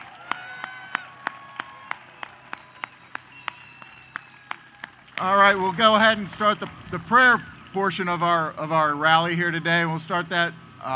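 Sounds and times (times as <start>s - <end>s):
audience applause: 0.0s - 8.5s
faint high whistling tones: 1.9s - 4.7s
speech: 5.2s - 10.9s.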